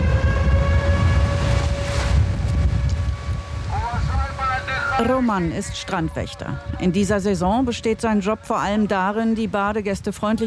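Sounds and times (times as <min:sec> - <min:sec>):
wailing air-raid siren: 0:00.0 - 0:08.8
sea surf: 0:01.0 - 0:06.2
speech: 0:05.0 - 0:10.4.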